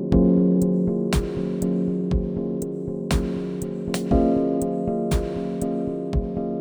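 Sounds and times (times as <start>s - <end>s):
magic ambient music at 432 Hz: 0.1s - 6.5s.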